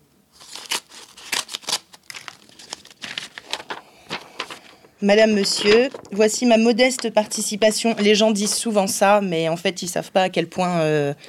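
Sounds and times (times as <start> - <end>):
paper envelopes of donation cheques torn open in the Greens' headquarters office: 0.3 - 6.1
speech: 5.0 - 11.2.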